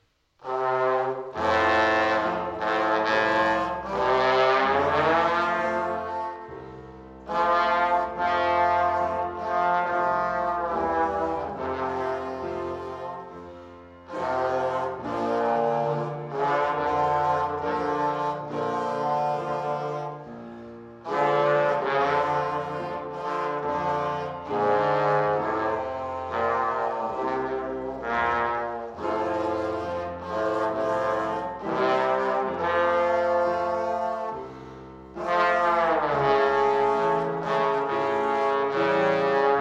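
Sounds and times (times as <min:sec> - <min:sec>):
tromboon: 0:00.0 - 0:39.6.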